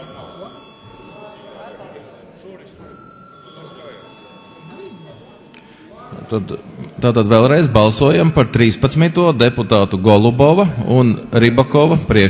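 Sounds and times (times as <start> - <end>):
parliament chamber electric bell ringing: 0.0 - 5.9
murmur of voices: 0.0 - 12.2
speech: 6.3 - 12.2.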